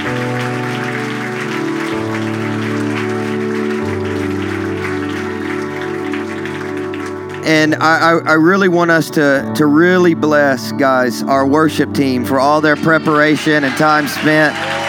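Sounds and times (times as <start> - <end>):
audience applause: 0.0 - 8.0, 12.6 - 14.8
speech: 7.5 - 14.8.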